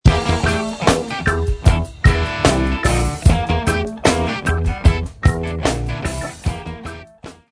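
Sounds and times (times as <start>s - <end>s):
locrian funk music: 0.0s - 7.5s.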